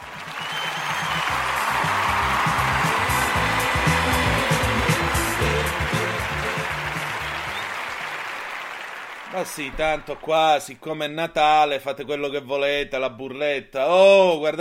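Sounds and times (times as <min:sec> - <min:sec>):
applause: 0:00.0 - 0:10.8
speech: 0:09.4 - 0:14.6.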